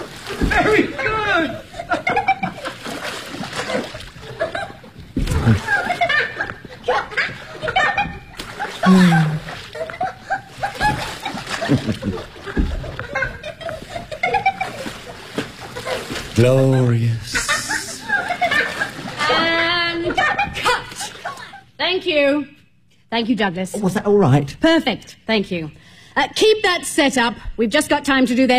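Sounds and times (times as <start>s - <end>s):
water splashing from someone swimming: 0.0s - 21.6s
person laughing and chuckling: 5.3s - 7.1s, 8.7s - 14.8s, 16.4s - 19.6s
speech: 8.9s - 9.2s, 23.2s - 28.5s.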